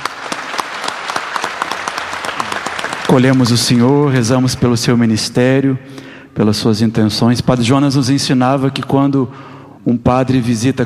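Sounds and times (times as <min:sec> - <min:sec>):
congregation applauding to welcome a visiting priest: 0:00.0 - 0:04.6
speech: 0:03.1 - 0:10.8.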